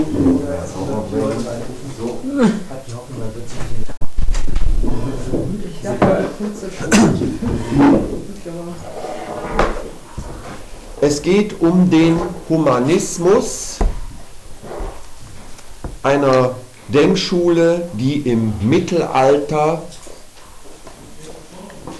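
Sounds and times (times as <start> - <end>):
speech: 0.0 - 3.8, 5.8 - 9.1, 11.0 - 13.7, 16.0 - 20.0
door being closed: 3.4 - 10.6, 11.9 - 15.0.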